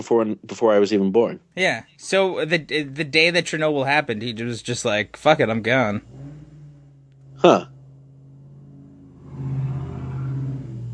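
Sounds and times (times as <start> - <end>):
speech: 0.0 - 6.2, 7.4 - 7.8
loud car driving past: 3.8 - 10.9.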